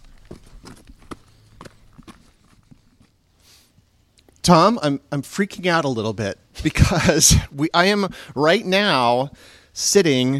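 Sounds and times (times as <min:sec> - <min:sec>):
footsteps on a trail arriving at Top Cottage: 0:00.0 - 0:03.2
speech: 0:04.5 - 0:10.3.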